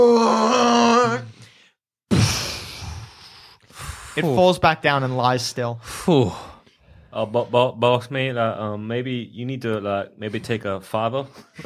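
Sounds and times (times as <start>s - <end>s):
giant worm roaring: 0.0s - 1.3s
speech: 4.2s - 6.5s, 7.1s - 11.6s.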